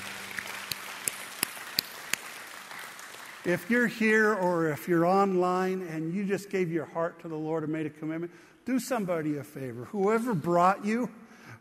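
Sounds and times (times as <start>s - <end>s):
scattered hand claps: 0.0s - 4.7s
speech: 3.4s - 11.6s.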